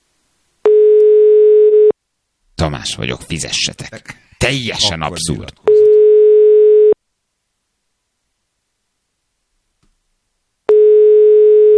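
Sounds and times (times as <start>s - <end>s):
telephone ringback tone from a call to an apartment advertiser: 0.7s - 2.0s, 5.7s - 7.0s, 10.7s - 11.7s
speech: 2.6s - 5.8s.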